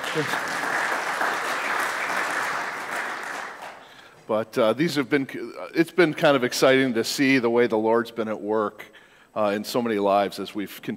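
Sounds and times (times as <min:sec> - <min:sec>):
audience clapping: 0:00.0 - 0:04.2
speech: 0:00.2 - 0:00.6, 0:04.3 - 0:10.9.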